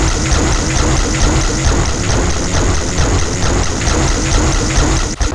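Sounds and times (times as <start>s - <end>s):
industrial electrical hum: 0.2s - 5.2s.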